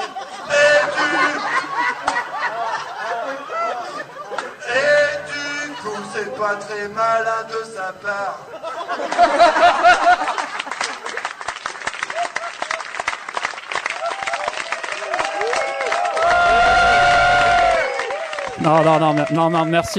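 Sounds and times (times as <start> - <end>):
cheers and laughter: 0.0 - 4.7, 8.6 - 11.2, 13.9 - 19.9
speech: 6.4 - 10.4, 18.6 - 19.9
audience applause: 9.9 - 19.9.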